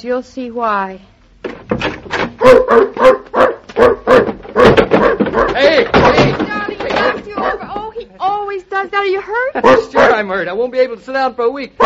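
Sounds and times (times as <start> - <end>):
speech: 0.0 - 1.1, 2.4 - 4.0, 9.0 - 11.8
dog barking: 2.4 - 6.2, 7.0 - 7.7, 9.6 - 10.3.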